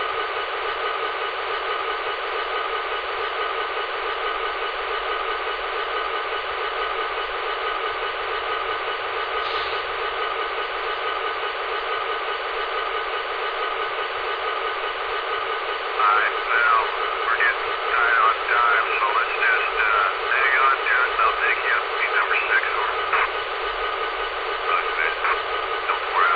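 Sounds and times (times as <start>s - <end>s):
GP35 electric train: 0.0s - 26.3s.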